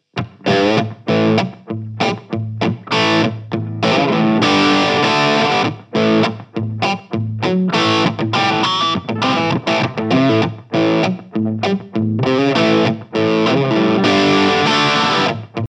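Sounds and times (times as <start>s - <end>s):
guitar through JHS Pedals Hard Drive vintage crunch: 0.0s - 15.6s.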